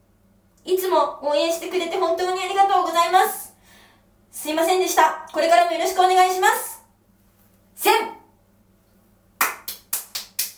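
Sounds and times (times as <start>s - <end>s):
speech: 0.6s - 3.4s, 4.4s - 6.7s, 7.8s - 8.1s
hands clapping: 9.4s - 10.5s.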